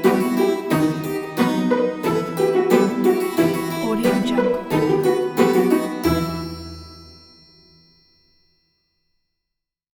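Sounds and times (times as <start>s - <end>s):
mysterious Halloween music: 0.0s - 7.2s.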